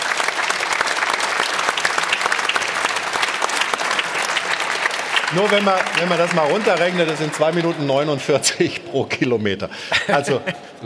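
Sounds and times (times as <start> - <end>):
audience applause: 0.0 - 8.7
speech: 5.3 - 10.7
laughter: 9.8 - 10.8.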